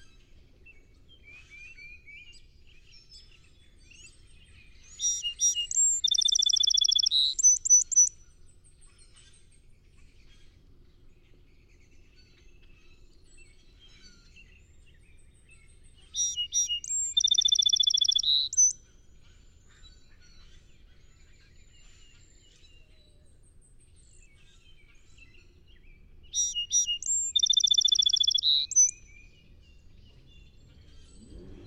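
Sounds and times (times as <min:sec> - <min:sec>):
song sparrow singing: 0:01.9 - 0:08.3, 0:16.0 - 0:19.6, 0:24.7 - 0:31.6.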